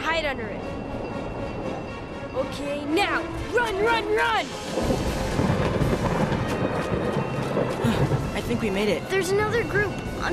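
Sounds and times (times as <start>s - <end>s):
speech: 0.2s - 0.8s, 2.4s - 5.4s, 8.5s - 10.3s
thunder during a lightning storm: 4.6s - 10.2s.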